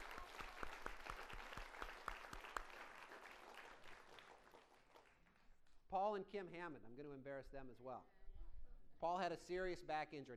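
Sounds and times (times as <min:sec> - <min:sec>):
audience applause: 0:00.0 - 0:05.3
speech: 0:05.9 - 0:08.2, 0:09.0 - 0:10.3.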